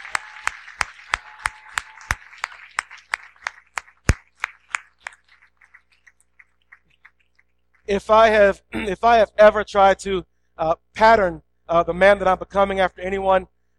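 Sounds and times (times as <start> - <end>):
audience applause: 0.0 - 7.2
speech: 7.9 - 13.7.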